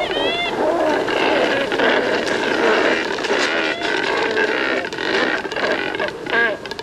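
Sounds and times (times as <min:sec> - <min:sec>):
chorus of cormorants croaking: 0:00.0 - 0:06.8.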